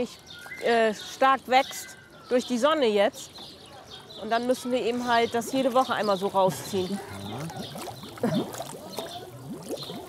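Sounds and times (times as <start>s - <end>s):
speech: 0.0s - 3.6s, 4.2s - 8.8s
algae-clogged water pump bubbling: 6.2s - 10.0s.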